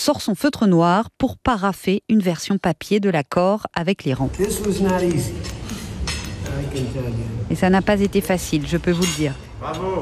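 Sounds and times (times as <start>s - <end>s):
speech: 0.0s - 5.6s, 6.6s - 10.0s
forks clinking against plates at dinner: 4.4s - 7.1s, 8.6s - 10.0s.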